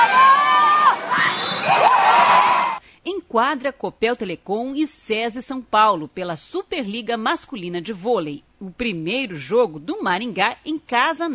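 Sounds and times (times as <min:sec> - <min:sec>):
high-pitched shouts or whistles: 0:00.0 - 0:02.8
packed gym crowd cheering excitedly: 0:00.0 - 0:02.8
speech: 0:03.4 - 0:11.3.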